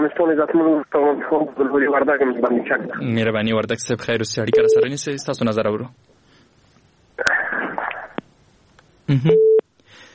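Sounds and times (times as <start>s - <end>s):
speech: 0.0s - 6.1s, 9.1s - 9.5s
crackly line noise after a phone call cuts off: 0.0s - 10.0s
busy tone after a phone call cuts off: 4.5s - 4.9s, 9.3s - 9.6s.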